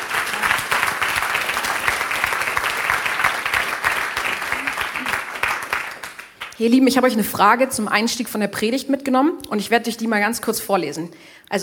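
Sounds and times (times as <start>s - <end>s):
audience applause: 0.0s - 6.6s
speech: 6.6s - 11.6s.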